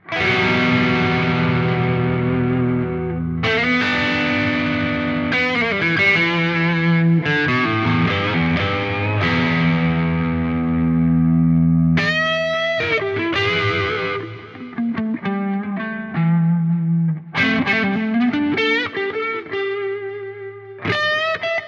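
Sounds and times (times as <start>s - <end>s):
Zoom G2X FOUR wide crunch distortion: 0.1s - 21.5s.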